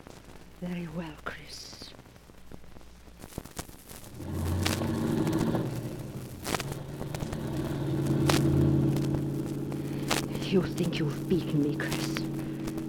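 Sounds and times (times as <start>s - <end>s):
speech: 0.6s - 1.9s, 10.5s - 12.2s
faint clicks and rustles: 2.0s - 12.8s
car engine rumbling while being driven: 4.0s - 12.8s.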